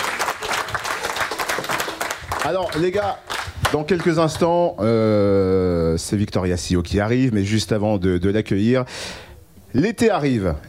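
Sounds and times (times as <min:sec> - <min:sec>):
audience applause after a live music performance: 0:00.0 - 0:04.4
speech: 0:02.4 - 0:10.6.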